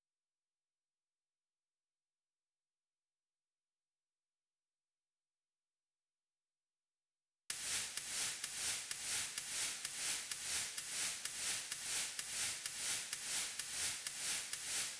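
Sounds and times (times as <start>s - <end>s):
noisy ride drum loop at 128 BPM: 7.5s - 14.9s.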